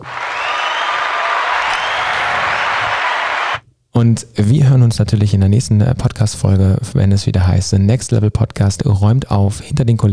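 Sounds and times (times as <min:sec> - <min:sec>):
applause: 0:00.0 - 0:03.6
speech: 0:04.0 - 0:10.1.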